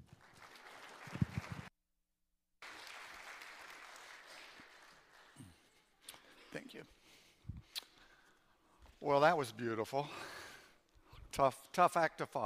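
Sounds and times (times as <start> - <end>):
audience applauding a guest speaker at a church gathering: 0.0 - 1.7, 2.6 - 5.8
speech: 9.0 - 10.3, 11.4 - 12.4.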